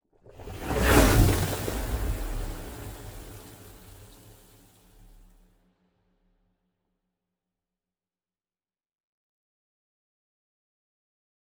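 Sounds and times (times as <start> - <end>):
destroyer ship moving: 0.4 - 4.7.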